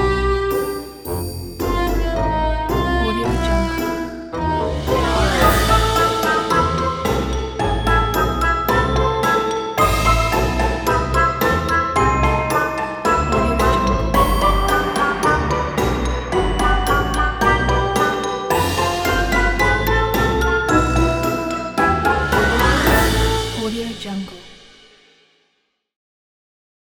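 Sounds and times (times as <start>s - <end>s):
quirky cartoon music: 0.0s - 24.8s.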